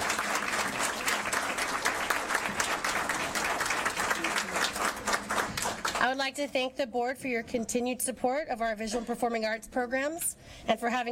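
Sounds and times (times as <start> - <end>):
audience applause: 0.0 - 6.0
speech: 6.1 - 11.1.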